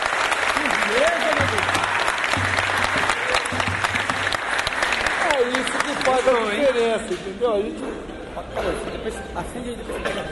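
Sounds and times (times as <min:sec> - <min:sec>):
audience applause in thanks for a guest: 0:00.0 - 0:07.0
speech: 0:06.2 - 0:10.3.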